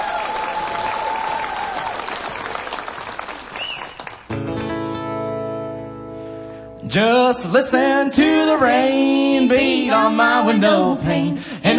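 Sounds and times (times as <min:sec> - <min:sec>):
audience applause: 0:00.0 - 0:04.4
speech: 0:06.9 - 0:11.7.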